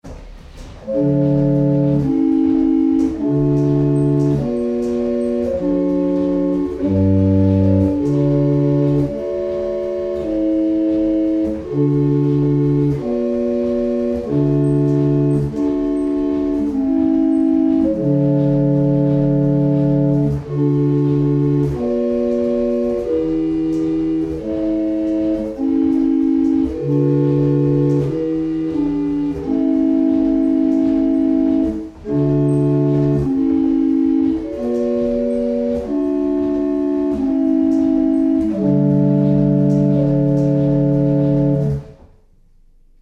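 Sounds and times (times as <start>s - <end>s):
barrel organs: 0.0s - 42.0s.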